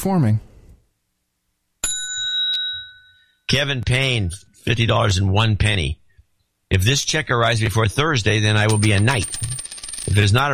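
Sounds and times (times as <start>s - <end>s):
speech: 0.0s - 0.5s, 3.5s - 6.0s, 6.7s - 10.5s
bell dinging: 1.8s - 3.4s.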